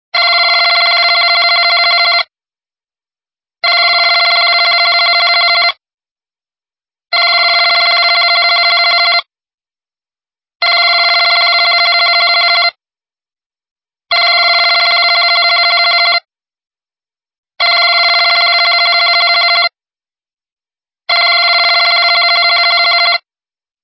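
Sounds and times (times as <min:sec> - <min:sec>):
old phone ringing: 0:00.2 - 0:02.3, 0:03.6 - 0:05.8, 0:07.1 - 0:09.3, 0:10.6 - 0:12.8, 0:14.1 - 0:16.3, 0:17.6 - 0:19.8, 0:21.1 - 0:23.3.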